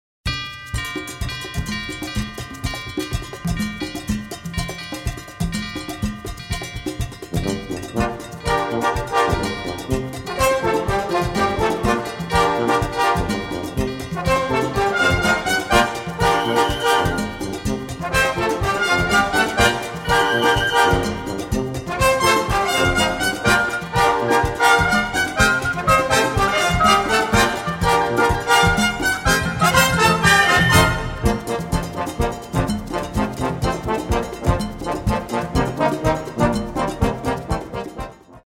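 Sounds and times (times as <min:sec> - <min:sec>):
wedding bells ringing: 0:00.3 - 0:37.6.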